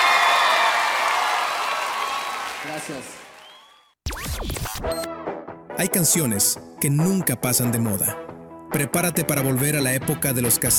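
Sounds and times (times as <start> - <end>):
crowd applause: 0.0 - 3.9
speech: 2.6 - 3.2, 5.8 - 10.7.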